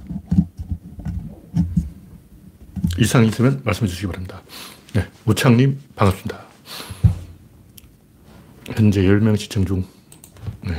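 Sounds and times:
microphone being handled and adjusted: 0.0s - 3.1s
speech: 3.0s - 6.9s, 8.8s - 10.0s.

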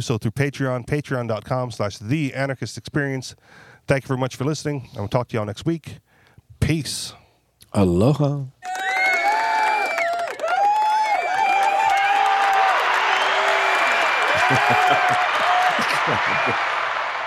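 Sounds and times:
speech: 0.0s - 8.8s, 14.5s - 16.7s
crowd applause: 8.6s - 17.2s
laughter: 14.2s - 16.9s.

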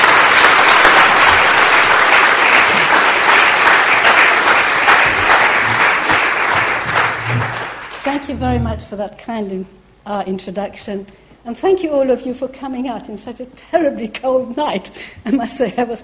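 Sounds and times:
audience applause welcoming a guest speaker at an evening talk: 0.0s - 8.6s
laughter: 4.8s - 7.7s
speech: 8.2s - 16.0s.

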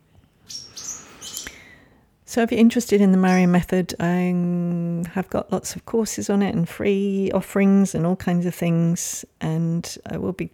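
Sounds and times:
welcome swallows chirping: 0.4s - 1.8s, 3.2s - 3.6s
speech: 2.3s - 10.5s.

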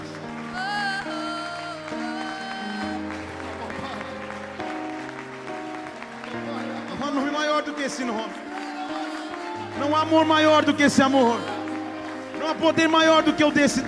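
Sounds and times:
audience clapping: 0.0s - 13.8s
speech: 7.6s - 8.4s, 9.8s - 11.5s, 12.5s - 13.8s.

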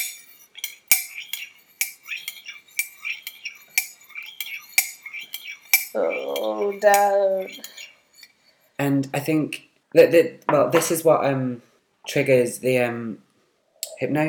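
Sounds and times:
silver teaspoon stirring tea in a china cup: 0.0s - 8.8s
speech: 6.0s - 7.7s, 8.8s - 13.2s, 14.0s - 14.2s.

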